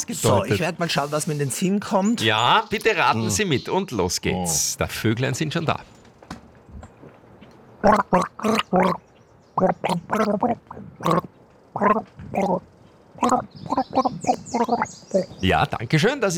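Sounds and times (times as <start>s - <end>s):
speech: 0.0s - 6.0s, 7.8s - 9.0s, 9.6s - 16.3s
person gargling with water: 7.8s - 9.0s, 9.6s - 12.6s, 13.2s - 15.3s.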